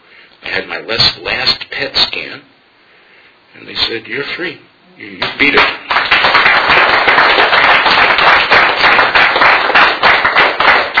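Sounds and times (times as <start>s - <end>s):
speech: 0.6s - 2.5s, 3.5s - 6.4s
crowd applause: 5.2s - 10.9s.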